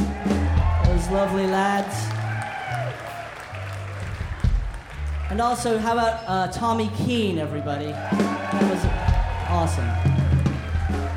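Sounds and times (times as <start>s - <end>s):
crowd clapping: 0.0s - 7.0s, 7.8s - 11.1s
speech: 1.0s - 2.2s, 5.3s - 10.1s.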